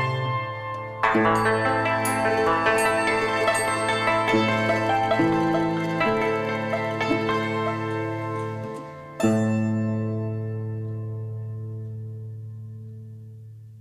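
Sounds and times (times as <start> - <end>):
traditional Chinese music: 0.0 - 10.6.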